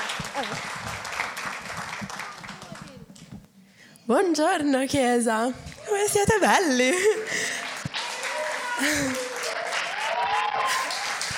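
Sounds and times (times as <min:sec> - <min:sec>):
audience applause: 0:00.0 - 0:03.1, 0:07.0 - 0:11.3
speech: 0:00.3 - 0:01.1, 0:04.1 - 0:07.4, 0:08.8 - 0:09.2.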